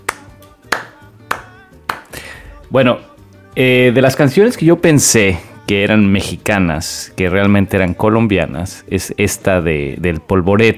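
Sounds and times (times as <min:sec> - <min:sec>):
hand claps at end of song: 0:00.0 - 0:02.2
speech: 0:02.7 - 0:10.7.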